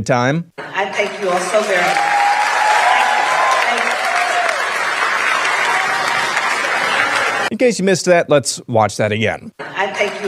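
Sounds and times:
speech: 0.0 - 2.1, 7.5 - 10.2
crowd standing ovation applause: 1.0 - 7.5.

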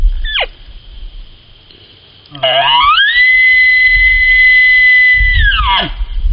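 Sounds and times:
human caller imitating an elk bugle: 0.2 - 0.5, 2.3 - 6.1.

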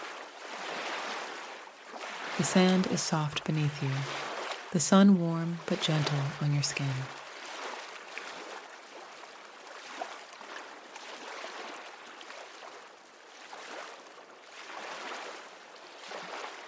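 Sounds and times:
ocean waves: 0.0 - 16.6
speech: 2.4 - 7.2.

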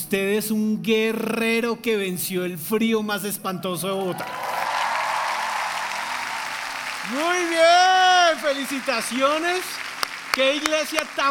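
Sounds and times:
speech: 0.1 - 4.5, 7.1 - 9.8, 10.4 - 11.2
audience applause: 4.1 - 11.2.

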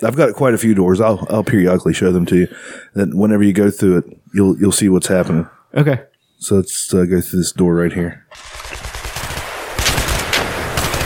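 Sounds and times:
speech: 0.0 - 8.8
automatic-weapon gunfire of a battle: 8.3 - 11.0.

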